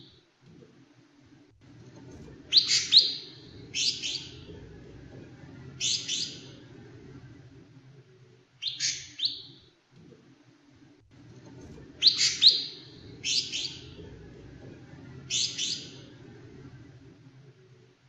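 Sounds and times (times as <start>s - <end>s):
female ijo mini bird calling: 2.4s - 7.1s, 12.0s - 16.8s.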